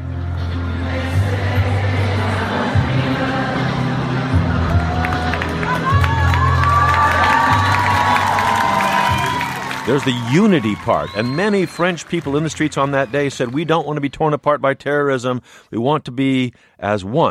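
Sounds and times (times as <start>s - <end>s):
large rally crowd singing a slow melody: 0.3s - 5.4s
steady roar of crowd cheering: 4.3s - 14.4s
scattered shouts and sharp whistles: 5.8s - 12.3s
speech: 9.9s - 17.2s.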